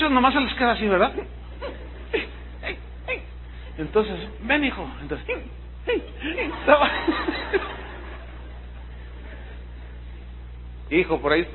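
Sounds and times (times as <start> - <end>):
speech: 0.0 - 1.4, 3.8 - 7.9, 10.9 - 11.5
voice imitating a child's lingering post-crying sobs: 1.6 - 3.3, 5.3 - 6.5
laughter: 5.9 - 9.9.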